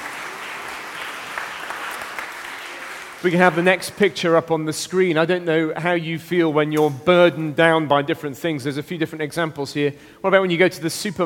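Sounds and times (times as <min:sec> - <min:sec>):
audience applause: 0:00.0 - 0:03.7
speech: 0:03.2 - 0:11.2.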